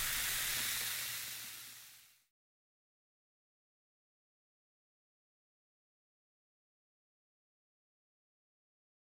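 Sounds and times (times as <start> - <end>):
carbonated drink fizzing: 0.0 - 2.3.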